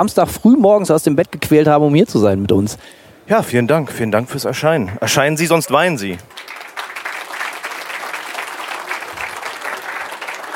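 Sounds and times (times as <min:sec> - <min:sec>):
speech: 0:00.0 - 0:06.5
audience applause: 0:04.9 - 0:10.5.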